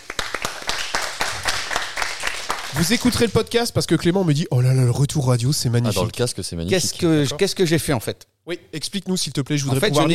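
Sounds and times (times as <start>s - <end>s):
people clapping: 0.0s - 3.7s
speech: 2.8s - 10.1s.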